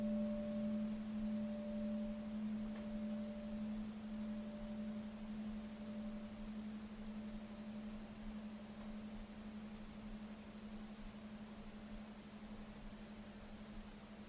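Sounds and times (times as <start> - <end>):
meditation bell ringing: 0.0 - 9.6
soft hiss: 0.0 - 14.2.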